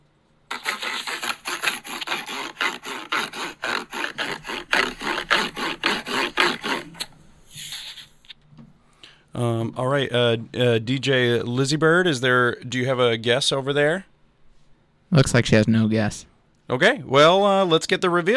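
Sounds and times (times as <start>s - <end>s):
Kinect sensor rubbed on cardboard: 0.5s - 8.2s
speech: 9.4s - 14.1s, 15.1s - 18.3s.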